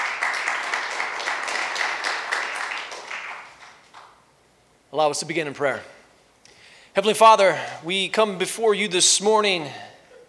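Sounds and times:
crowd applause: 0:00.0 - 0:04.1
speech: 0:04.9 - 0:06.0, 0:07.0 - 0:09.9.

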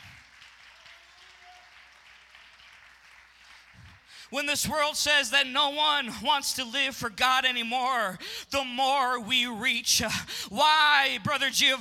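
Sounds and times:
audience clapping hands: 0:00.0 - 0:04.3
speech: 0:04.2 - 0:11.7.

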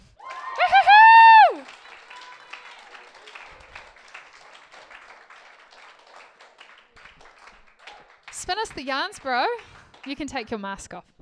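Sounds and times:
audience applause: 0:00.0 - 0:10.3
loud whooping cry: 0:00.2 - 0:02.7
crowd noise: 0:00.6 - 0:08.8
speech: 0:08.6 - 0:11.1.

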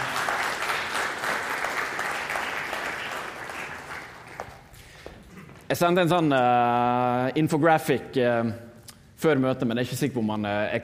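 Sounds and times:
audience applause: 0:00.0 - 0:04.9
speech: 0:05.7 - 0:10.8.

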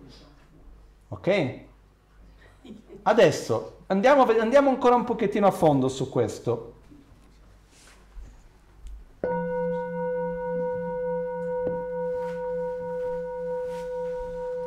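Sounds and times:
speech: 0:01.1 - 0:01.7, 0:02.6 - 0:06.8
bell ringing: 0:09.2 - 0:14.6.

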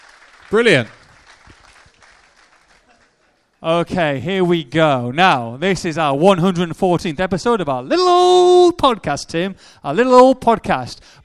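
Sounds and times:
applause: 0:00.0 - 0:03.6
speech: 0:00.5 - 0:01.0, 0:03.6 - 0:11.2.

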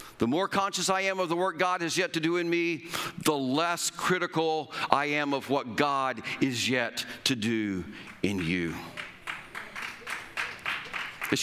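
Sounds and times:
speech: 0:00.2 - 0:09.0
audience applause: 0:08.1 - 0:11.4.

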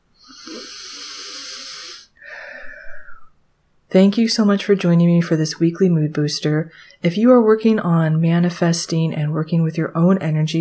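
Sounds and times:
deep breath in through the nose during a guided visualization: 0:00.2 - 0:03.4
speech: 0:03.9 - 0:10.6.

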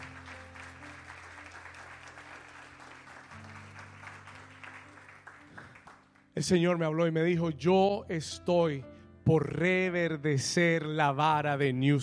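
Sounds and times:
audience applause: 0:00.0 - 0:06.3
speech: 0:06.4 - 0:12.0.

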